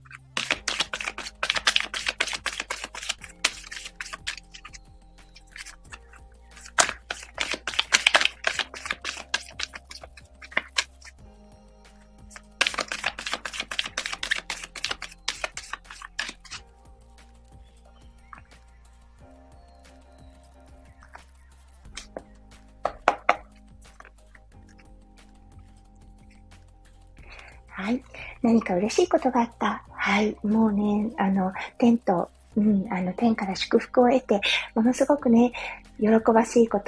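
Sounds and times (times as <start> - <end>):
tarot cards shuffled for a reading: 0.0 - 11.2, 12.2 - 16.7, 21.0 - 25.4
speech: 28.5 - 36.8.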